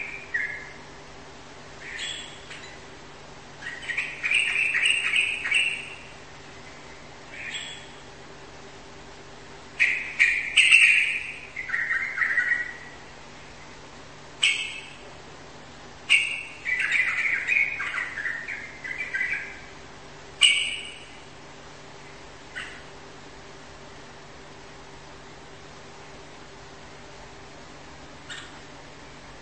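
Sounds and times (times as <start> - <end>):
bird chattering song: 0.0 - 0.8, 1.8 - 2.9, 3.5 - 8.1, 9.8 - 13.7, 14.4 - 15.1, 16.0 - 19.8, 20.4 - 21.3, 22.4 - 23.0, 28.2 - 28.7.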